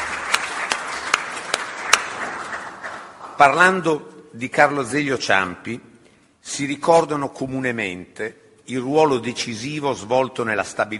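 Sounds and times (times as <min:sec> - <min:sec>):
affectionate audience applause: 0:00.0 - 0:03.4
speech: 0:03.4 - 0:10.9.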